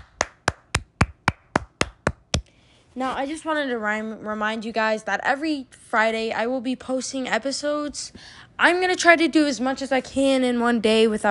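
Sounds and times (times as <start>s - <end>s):
people clapping: 0.0s - 2.4s
speech: 3.0s - 11.2s.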